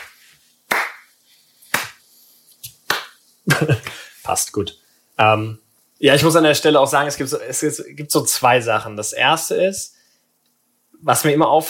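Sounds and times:
hand clap: 0.0 - 1.1, 1.7 - 2.0, 2.6 - 3.2
speech: 3.5 - 10.0, 11.0 - 11.6.

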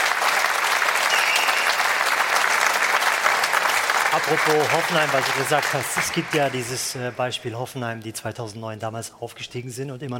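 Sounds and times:
audience applause: 0.0 - 7.4
speech: 4.1 - 10.1.

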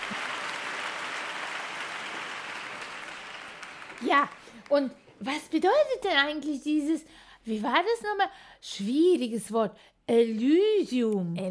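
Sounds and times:
enthusiastic audience applause: 0.0 - 4.7
speech: 4.0 - 11.5.

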